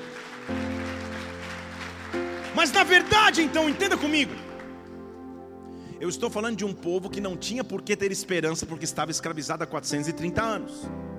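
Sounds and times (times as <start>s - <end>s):
audience applauding: 0.0s - 5.0s
speech: 2.6s - 4.4s, 6.0s - 11.1s.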